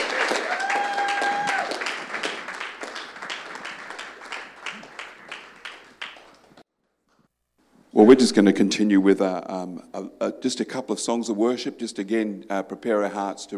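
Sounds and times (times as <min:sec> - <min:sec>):
audience applause: 0:00.0 - 0:06.6
speech: 0:08.0 - 0:13.5.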